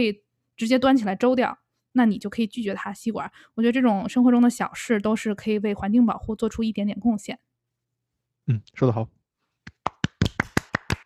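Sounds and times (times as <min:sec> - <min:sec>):
speech: 0:00.0 - 0:07.5, 0:08.5 - 0:09.2
hands clapping: 0:09.6 - 0:11.0.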